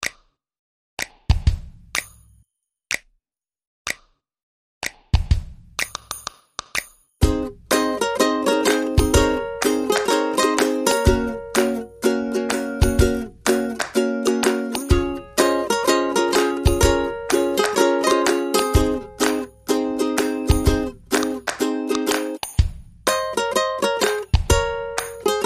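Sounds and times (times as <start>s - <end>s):
drums: 1.3s - 2.0s, 5.1s - 25.4s
ukuleles: 7.2s - 22.4s, 23.1s - 25.4s.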